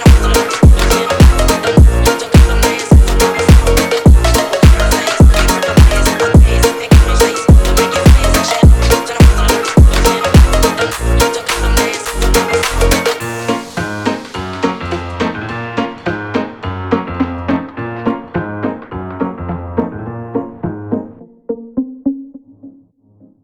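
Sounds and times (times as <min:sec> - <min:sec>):
swing phonk music: 0:00.0 - 0:23.4.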